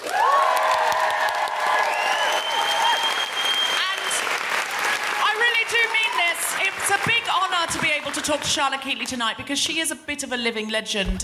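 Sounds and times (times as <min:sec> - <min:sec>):
cheers and whoops: 0:00.0 - 0:06.6
crowd applause: 0:00.0 - 0:08.7
speech: 0:08.2 - 0:11.2.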